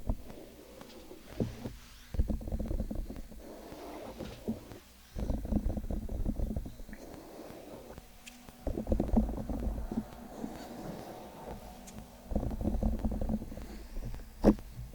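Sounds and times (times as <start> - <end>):
ear-cleaning and massage rubbing: 0.0 - 14.9.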